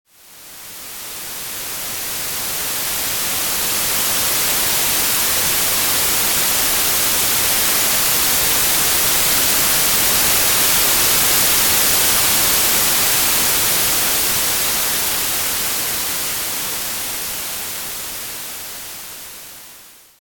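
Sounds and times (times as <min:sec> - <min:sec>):
noise: 0:00.1 - 0:20.2.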